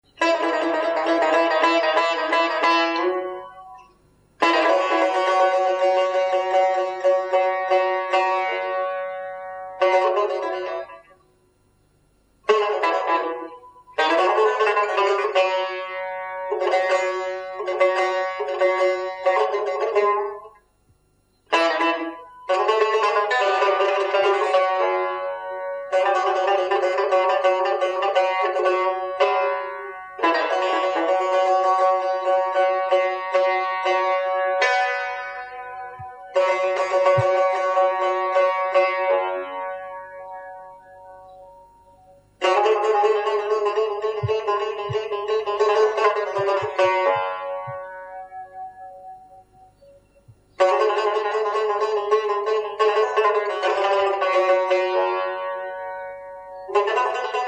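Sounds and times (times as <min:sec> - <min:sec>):
tar instrumental: 0:00.0 - 0:57.4.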